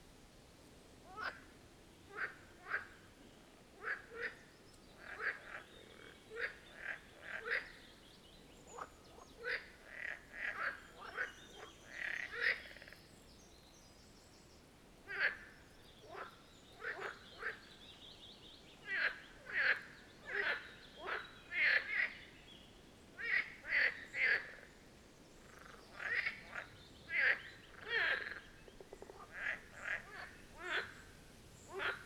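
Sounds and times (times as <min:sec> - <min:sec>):
low steady hiss: 0:00.0 - 0:32.0
chorus of Marsh Frogs Pelophylax ridibundus croaking at the Birkensee: 0:02.1 - 0:03.1, 0:03.8 - 0:08.0, 0:08.6 - 0:13.0, 0:15.0 - 0:17.8, 0:18.8 - 0:22.4, 0:23.2 - 0:32.0.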